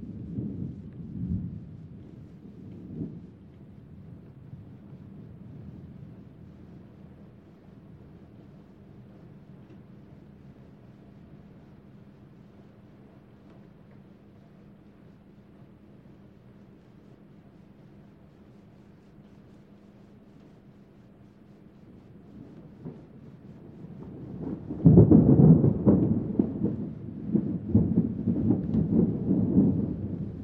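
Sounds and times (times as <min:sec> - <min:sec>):
thunder rumbling during a rainstorm: 0:23.6 - 0:30.4.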